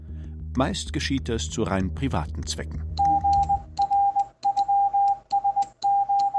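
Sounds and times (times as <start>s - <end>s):
speech: 0.6s - 3.1s
Morse code tone from an electronic key: 3.0s - 6.3s.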